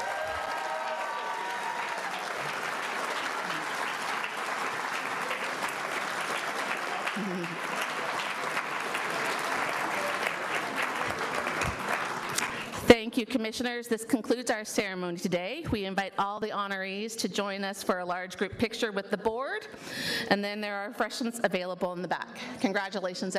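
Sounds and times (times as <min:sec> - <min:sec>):
crowd applause: 0:00.0 - 0:12.8
speech: 0:13.2 - 0:23.3.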